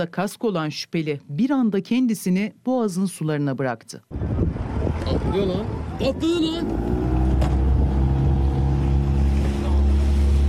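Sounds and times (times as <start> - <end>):
speech: 0.0 - 4.6, 5.2 - 7.0
light wind: 4.1 - 10.4
motorboat engine drone crossing the Bosphorus: 5.7 - 10.4.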